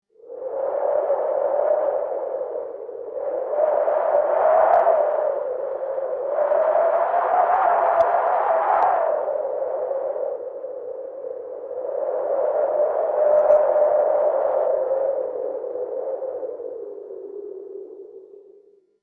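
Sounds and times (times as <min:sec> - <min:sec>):
winter wind: 0:00.0 - 0:18.8.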